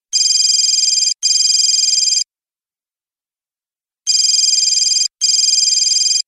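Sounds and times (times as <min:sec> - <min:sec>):
phone ringer: 0:00.2 - 0:02.2, 0:04.1 - 0:06.2.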